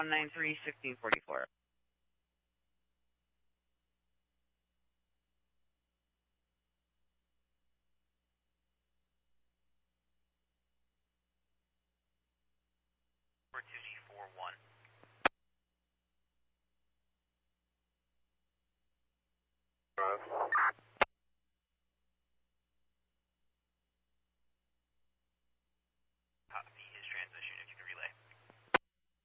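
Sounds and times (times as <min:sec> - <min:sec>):
speech: 0:00.0 - 0:01.6
radio static: 0:13.6 - 0:14.6, 0:20.0 - 0:21.1, 0:26.6 - 0:28.2.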